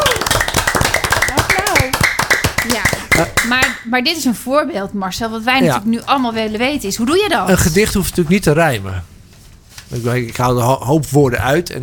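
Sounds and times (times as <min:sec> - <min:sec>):
people clapping: 0:00.0 - 0:03.9
speech: 0:03.5 - 0:09.1, 0:09.9 - 0:11.8.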